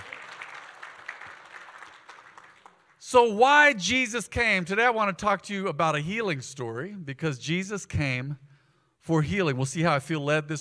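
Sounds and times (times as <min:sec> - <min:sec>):
audience clapping: 0:00.0 - 0:03.0
speech: 0:03.1 - 0:10.5.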